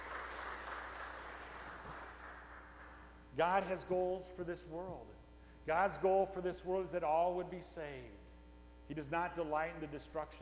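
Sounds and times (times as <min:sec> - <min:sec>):
praise clapping: 0:00.0 - 0:03.1
speech: 0:03.4 - 0:08.2, 0:08.9 - 0:10.3.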